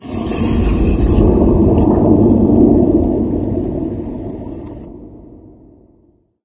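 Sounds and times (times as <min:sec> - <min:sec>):
muffled low machine ambience: 0:00.6 - 0:04.9.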